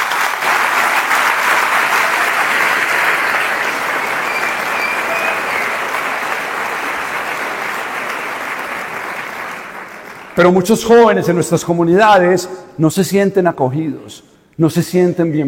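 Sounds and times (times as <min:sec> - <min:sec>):
audience applause: 0:00.0 - 0:10.6
speech: 0:10.4 - 0:15.4.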